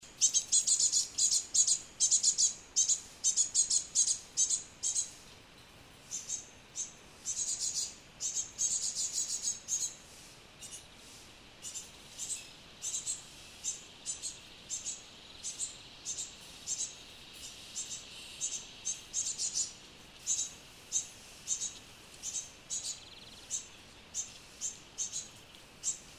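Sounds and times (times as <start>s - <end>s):
great tit calls: 0.0s - 26.1s
hiss: 0.0s - 26.1s.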